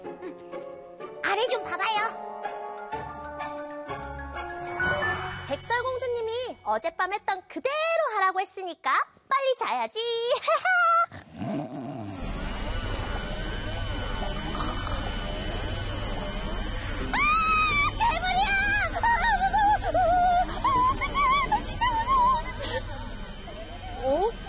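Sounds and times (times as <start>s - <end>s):
speech: 1.4s - 2.3s, 5.5s - 11.8s
growl-like wavering pitched sounds: 11.1s - 24.4s
washing machine running: 12.2s - 24.4s.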